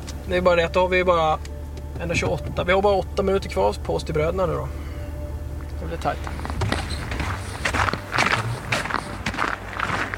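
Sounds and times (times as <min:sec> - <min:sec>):
speech: 0:00.3 - 0:04.8, 0:05.8 - 0:06.5
footsteps walking in snow: 0:06.1 - 0:10.1.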